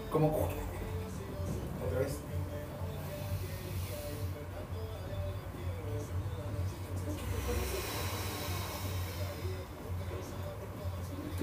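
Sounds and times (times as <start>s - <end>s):
speech: 0.1s - 0.7s, 1.5s - 2.3s
soft airy breath sounds: 2.7s - 11.3s.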